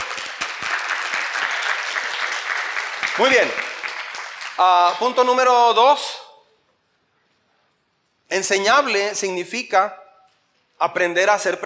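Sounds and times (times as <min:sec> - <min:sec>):
audience applause: 0:00.0 - 0:05.5
speech: 0:03.2 - 0:03.7, 0:04.6 - 0:06.2, 0:08.3 - 0:10.0, 0:10.8 - 0:11.6.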